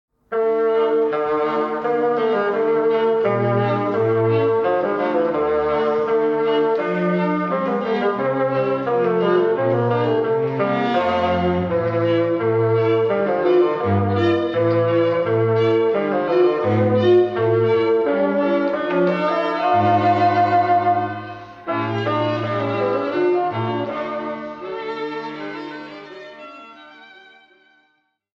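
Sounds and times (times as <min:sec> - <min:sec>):
quartet playing: 0:00.3 - 0:26.0.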